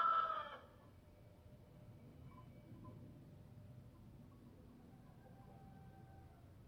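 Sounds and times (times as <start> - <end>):
rooster crowing cock-a-doodle-doo: 0.0 - 0.8, 5.1 - 6.5.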